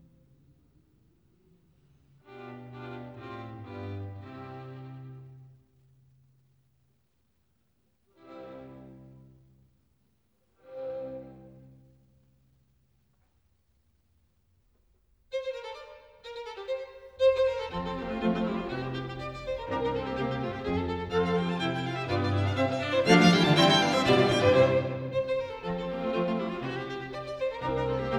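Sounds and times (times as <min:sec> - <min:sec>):
string quartet slow movement in G major: 0:02.1 - 0:05.6, 0:08.2 - 0:09.5, 0:10.6 - 0:12.0, 0:15.3 - 0:28.1.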